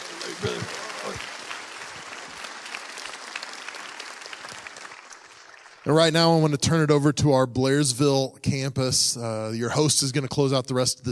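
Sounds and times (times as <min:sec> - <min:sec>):
audience applause: 0:00.0 - 0:06.0
speech: 0:05.9 - 0:11.0.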